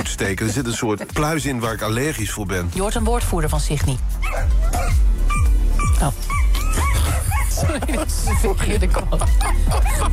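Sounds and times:
laughter: 0.0 - 1.4, 6.8 - 10.1
speech: 0.1 - 5.4, 6.0 - 6.4, 7.5 - 10.1
dogs barking and yipping: 4.2 - 10.1.

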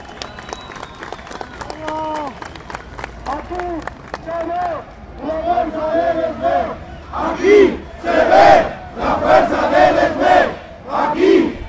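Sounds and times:
crowd applauding: 0.0 - 5.3
speech: 3.4 - 10.4.

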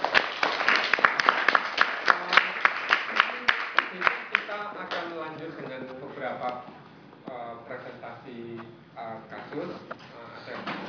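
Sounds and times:
workshop participants clapping at a community history museum event: 0.0 - 5.1.

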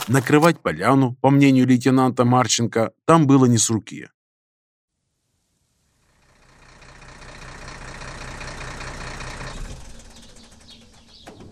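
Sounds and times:
speech: 0.1 - 4.2
truck engine rumbling through a gate then idling: 6.2 - 11.4.

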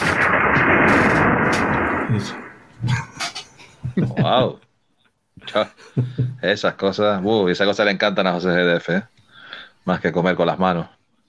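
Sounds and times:
thunder sound effect: 0.0 - 3.4
speech: 2.1 - 3.0, 4.2 - 4.6, 5.4 - 9.1, 9.8 - 11.0
laughter: 2.8 - 4.6, 5.4 - 6.4.

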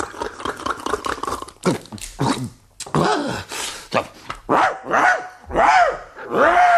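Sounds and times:
person imitating a big dog barking and howling after drinking schnapps: 1.7 - 3.5, 4.5 - 6.7.

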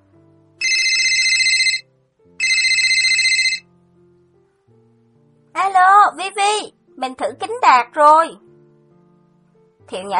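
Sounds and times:
electronic telephone ringtone for an incoming phone call: 0.6 - 3.7
speech: 6.2 - 8.4, 9.9 - 10.1.

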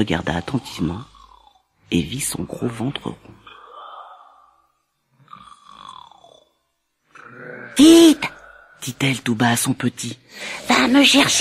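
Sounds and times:
speech: 0.0 - 1.1, 1.9 - 3.3, 7.8 - 11.3
wolf snoring loudly: 0.4 - 1.8, 2.4 - 8.8.

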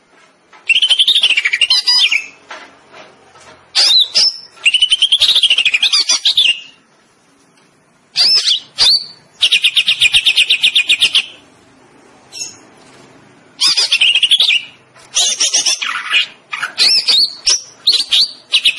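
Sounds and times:
greater green leafbird song with trills and whistles: 0.6 - 2.4, 3.8 - 6.8, 8.2 - 11.4, 12.3 - 12.7, 13.6 - 18.7.

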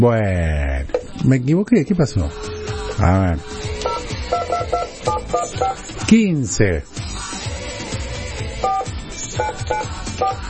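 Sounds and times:
speech: 0.0 - 3.7, 5.3 - 7.0, 9.4 - 10.4
telephone touch tones as a number is dialed: 2.3 - 5.9, 8.6 - 10.4.

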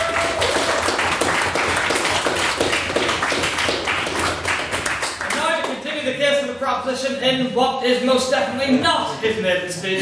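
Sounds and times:
crowd applauding: 0.0 - 5.8
speech: 6.9 - 9.9.

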